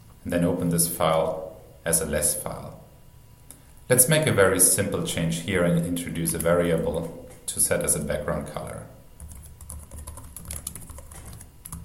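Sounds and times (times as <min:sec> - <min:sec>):
speech: 0:00.2 - 0:02.8, 0:03.9 - 0:09.0
typing on a computer keyboard: 0:09.2 - 0:11.8.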